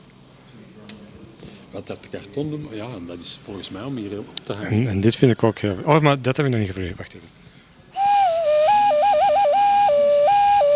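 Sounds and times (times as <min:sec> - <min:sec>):
speech: 0:01.7 - 0:07.4
ocarina-like whistle blown through a small hole: 0:08.0 - 0:10.7.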